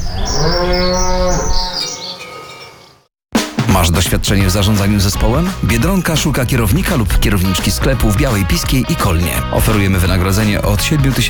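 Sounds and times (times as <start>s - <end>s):
cow mooing: 0.0s - 2.3s
speech: 3.8s - 11.2s.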